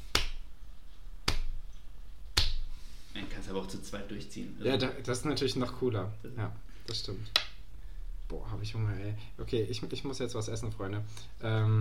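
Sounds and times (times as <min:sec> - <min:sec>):
slow sarcastic claps from a single person: 0:00.0 - 0:00.5, 0:01.2 - 0:01.6, 0:02.3 - 0:02.7
speech: 0:03.5 - 0:07.4, 0:08.3 - 0:11.7.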